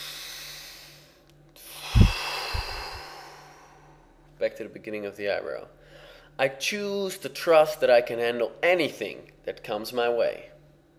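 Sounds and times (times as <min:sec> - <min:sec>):
deep breath during a tapping exercise: 0:00.0 - 0:04.2, 0:05.8 - 0:06.4
speech: 0:04.4 - 0:10.6.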